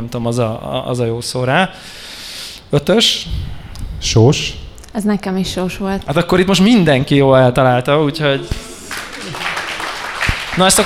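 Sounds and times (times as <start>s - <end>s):
speech: 0.0s - 8.6s, 10.6s - 10.8s
small group applauding: 8.5s - 10.8s.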